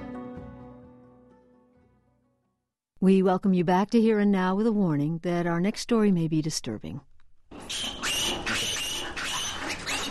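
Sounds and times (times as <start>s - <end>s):
speech: 3.0s - 7.1s
piglets on an Ohio hog farm squealing as they are pulled from their mothers: 7.6s - 10.1s.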